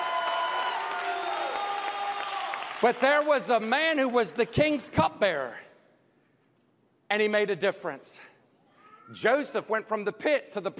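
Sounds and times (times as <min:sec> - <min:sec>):
audience applause: 0:00.0 - 0:04.4
speech: 0:02.8 - 0:05.7, 0:07.1 - 0:08.3, 0:09.1 - 0:10.7.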